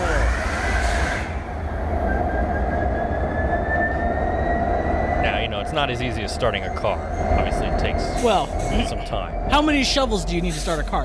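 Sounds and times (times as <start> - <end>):
thin whine of train engine rising in pitch: 0.0 - 11.0
train starting up with low rumble: 0.0 - 11.0
speech: 5.8 - 11.0.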